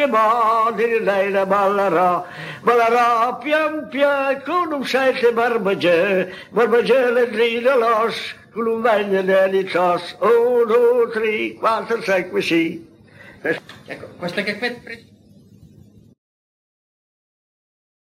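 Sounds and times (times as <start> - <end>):
singing: 0.0 - 13.0.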